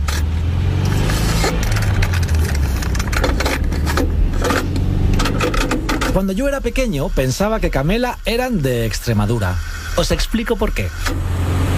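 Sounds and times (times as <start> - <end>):
vehicle rattles and bumps: 0.0 - 8.3
car engine running while driving: 0.0 - 11.7
speech: 6.2 - 11.3.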